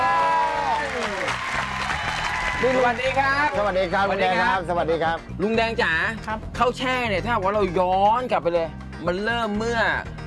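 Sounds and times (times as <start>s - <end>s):
applause: 0.0s - 3.9s
speech: 2.6s - 10.2s.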